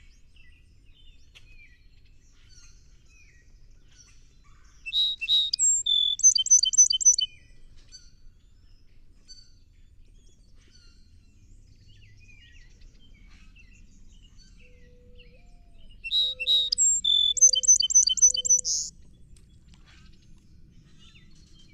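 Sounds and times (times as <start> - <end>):
faint chirps: 4.9 - 7.3, 16.1 - 18.9
song sparrow singing: 4.9 - 7.3, 13.9 - 18.9.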